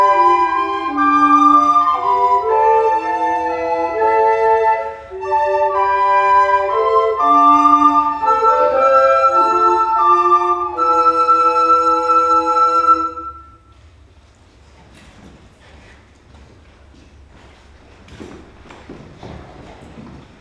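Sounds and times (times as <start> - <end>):
instrumental ensemble playing a postlude: 0.0 - 13.7.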